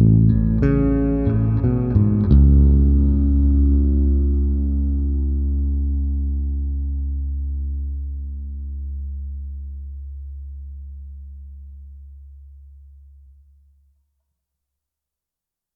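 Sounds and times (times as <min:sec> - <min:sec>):
plate studio bass long with reverb: 0:00.0 - 0:13.9.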